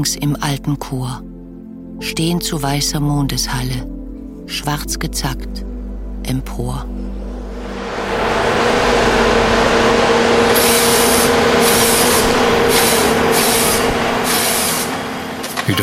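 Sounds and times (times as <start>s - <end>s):
speech: 0.0s - 1.3s, 2.0s - 5.7s, 6.3s - 7.1s
harvester swivelling saw blade whining cutting tree trunk: 7.6s - 15.8s.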